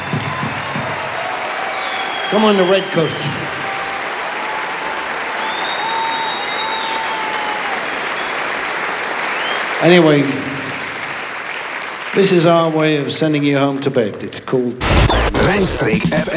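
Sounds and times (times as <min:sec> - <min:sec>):
audience applause: 0:00.0 - 0:13.0
speech: 0:02.3 - 0:03.6, 0:09.8 - 0:10.4, 0:12.2 - 0:16.3.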